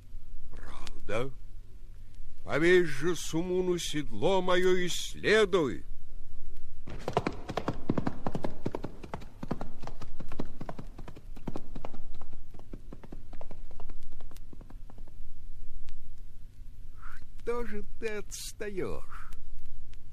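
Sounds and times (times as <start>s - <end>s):
speech: 1.1s - 1.4s, 2.4s - 5.9s, 18.0s - 19.2s
horse hooves clip-clopping: 6.8s - 16.0s.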